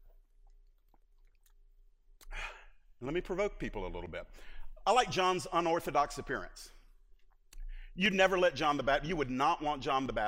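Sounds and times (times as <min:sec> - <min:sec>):
person sipping water: 0:00.0 - 0:03.0
speech: 0:02.3 - 0:06.8, 0:08.0 - 0:10.2.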